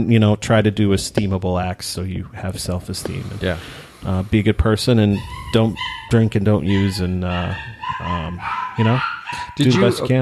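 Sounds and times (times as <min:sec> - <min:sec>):
speech: 0:00.0 - 0:10.1
small dogs yipping and barking excitedly: 0:05.0 - 0:10.1.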